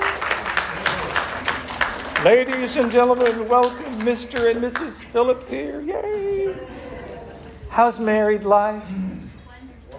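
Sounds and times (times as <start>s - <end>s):
audience clapping as couple enters: 0.0s - 5.5s
speech: 2.2s - 6.9s, 7.8s - 9.2s.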